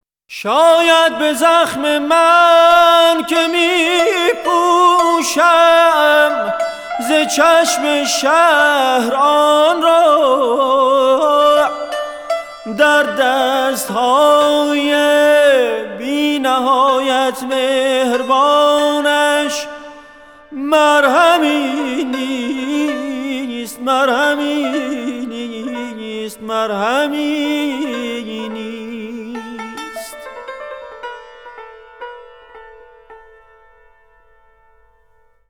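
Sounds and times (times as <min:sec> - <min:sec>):
saz and vocal singing: 0:00.3 - 0:30.9.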